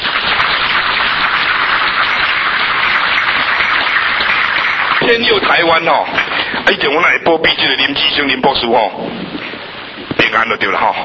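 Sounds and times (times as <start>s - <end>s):
audience applause: 0.0s - 6.7s
speech: 5.1s - 9.4s, 10.3s - 11.0s.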